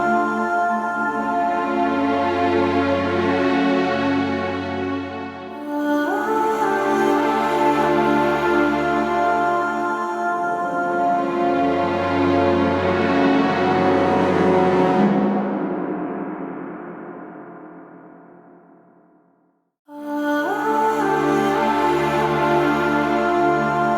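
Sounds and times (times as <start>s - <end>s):
music: 0.0s - 19.5s, 20.1s - 23.9s.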